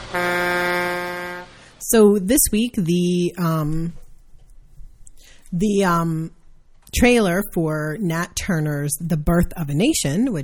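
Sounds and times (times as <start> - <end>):
truck air horn blast: 0.0 - 1.8
speech: 0.1 - 0.3, 1.9 - 4.0, 5.5 - 10.4.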